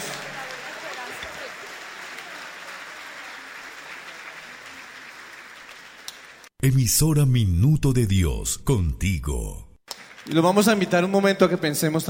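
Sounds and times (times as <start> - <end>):
applause: 0.0 - 6.6, 9.8 - 12.0
speech: 6.6 - 9.7, 10.3 - 12.0.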